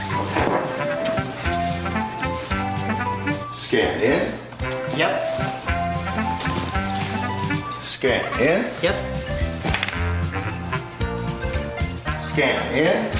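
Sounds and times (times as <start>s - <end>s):
busy loud musical track: 0.0s - 13.1s
slide whistle swooping upward: 3.3s - 3.7s, 4.8s - 5.1s, 7.8s - 8.2s, 11.9s - 12.4s
speech: 3.7s - 4.4s, 5.0s - 5.6s, 8.0s - 9.4s, 12.4s - 13.1s.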